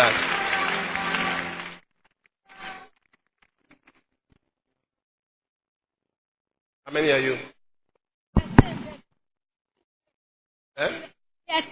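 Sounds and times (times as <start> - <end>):
audience clapping: 0.0 - 1.9
speech: 6.9 - 7.5.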